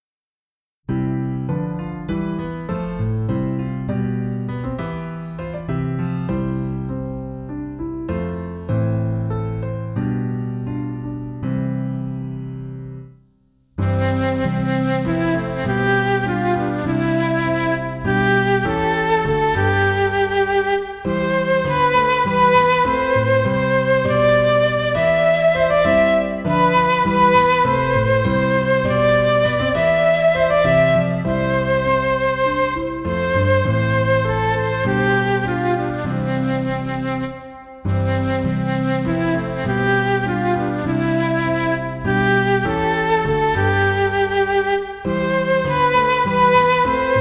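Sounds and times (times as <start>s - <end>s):
piano: 0.9s - 47.2s
flute: 13.8s - 47.2s.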